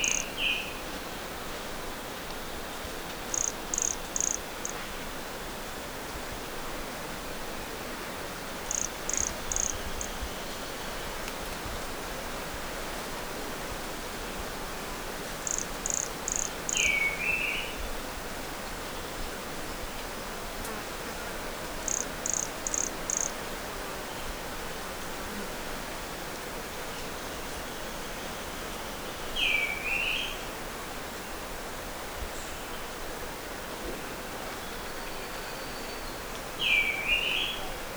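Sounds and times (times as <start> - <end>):
hiss: 0.0 - 37.9
Brachycephalus sulfuratus toadlet calls: 3.3 - 4.8, 8.7 - 9.8, 15.4 - 16.9.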